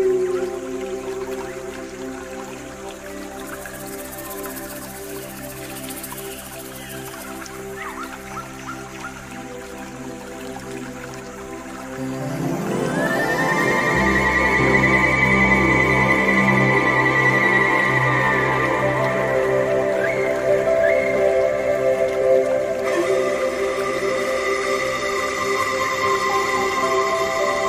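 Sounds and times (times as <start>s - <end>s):
pan flute music: 0.0s - 27.6s
soft constant water wash: 0.0s - 27.6s.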